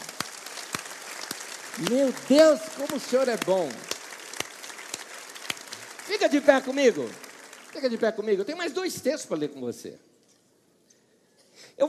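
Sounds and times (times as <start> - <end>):
audience applauding: 0.0 - 8.9
speech: 1.8 - 3.9, 6.1 - 10.1.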